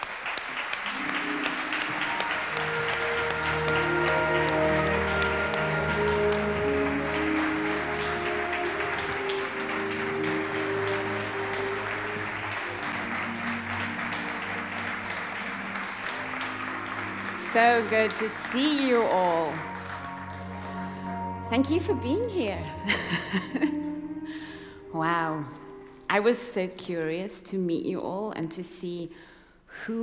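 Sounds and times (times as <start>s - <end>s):
audience applause: 0.0s - 21.8s
musical tones: 0.8s - 26.2s
speech: 17.6s - 19.7s, 21.5s - 23.8s, 25.0s - 30.0s.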